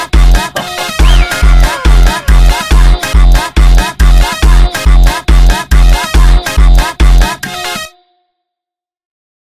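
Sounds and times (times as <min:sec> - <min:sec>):
sped up funk music: 0:00.0 - 0:07.5.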